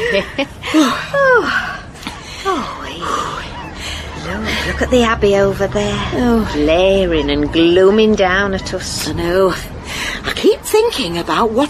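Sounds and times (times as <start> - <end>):
speech: 0.1 - 1.7, 4.3 - 9.7, 10.4 - 11.6
person panting and catching their breath: 0.6 - 4.6.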